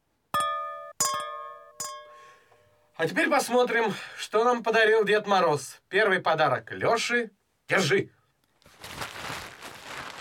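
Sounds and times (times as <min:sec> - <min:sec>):
glasses clinking together in a New Year toast: 0:00.4 - 0:02.8
speech: 0:03.0 - 0:08.2.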